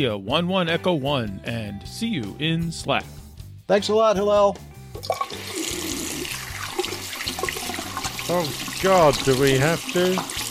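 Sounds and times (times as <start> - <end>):
speech: 0.0 - 5.6, 8.3 - 10.4
running water from washing hands at a sink: 5.0 - 10.4.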